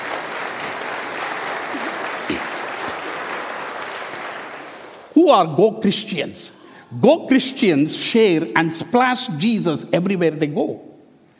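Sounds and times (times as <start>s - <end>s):
audience clapping: 0.0s - 5.2s
speech: 5.2s - 10.9s.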